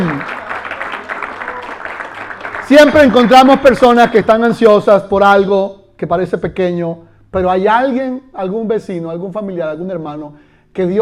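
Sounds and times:
audience clapping: 0.0s - 3.6s
speech: 2.7s - 11.0s.

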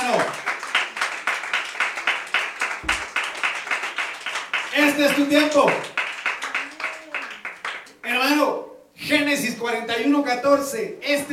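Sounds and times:
audience clapping hands: 0.0s - 8.0s
speech: 5.0s - 6.0s, 9.3s - 11.3s.

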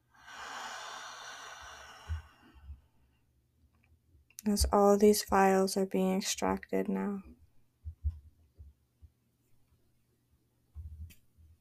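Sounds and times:
deep breath in and out during a guided emotional-release meditation: 0.0s - 3.1s
speech: 4.4s - 7.4s.

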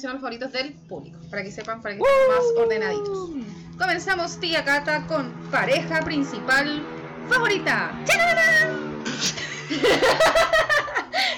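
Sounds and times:
speech: 0.0s - 10.5s
cat yowling: 2.0s - 3.4s
laughter: 9.2s - 11.3s.

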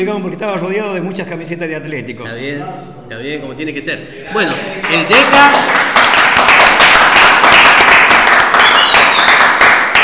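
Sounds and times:
speech: 0.0s - 7.0s
Atlético and San Martín football fans applauding: 4.8s - 10.0s.

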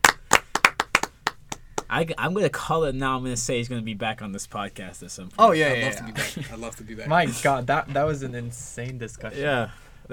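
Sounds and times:
small round of hand clapping: 0.0s - 2.0s
speech: 1.9s - 10.1s
laughter: 5.8s - 7.6s.

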